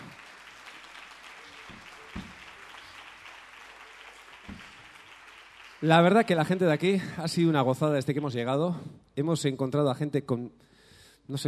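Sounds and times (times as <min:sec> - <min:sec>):
audience applause: 0:00.0 - 0:07.3
speech: 0:05.8 - 0:10.7, 0:11.3 - 0:11.4.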